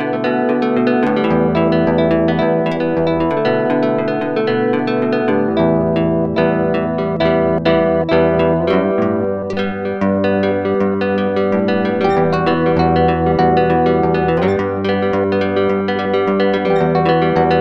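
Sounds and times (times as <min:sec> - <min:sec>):
guitar bridge section: 0:00.0 - 0:17.5.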